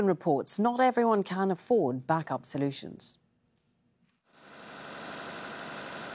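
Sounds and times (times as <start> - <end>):
speech: 0.0 - 3.2
diesel generator running during a power outage in Khartoum: 4.5 - 6.1.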